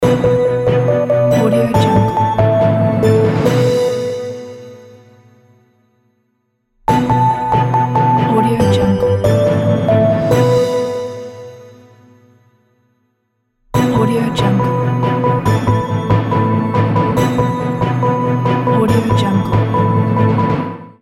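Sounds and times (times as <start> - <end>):
logo jingle: 0.0 - 4.8, 6.9 - 11.6, 13.8 - 20.9.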